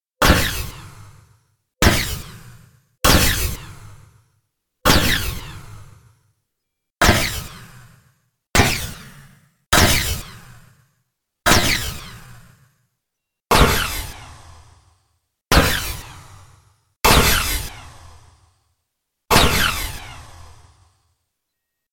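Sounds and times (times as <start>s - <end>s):
laser cannon: 0.2s - 1.2s, 1.8s - 4.0s, 4.8s - 6.0s, 7.0s - 10.8s, 11.5s - 12.7s, 13.5s - 14.9s, 15.5s - 18.5s, 19.3s - 21.0s.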